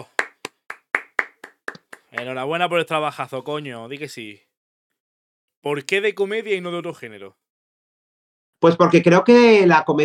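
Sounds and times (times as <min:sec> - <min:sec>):
applause: 0:00.0 - 0:02.7
speech: 0:02.2 - 0:04.5, 0:05.6 - 0:07.4, 0:08.6 - 0:10.0.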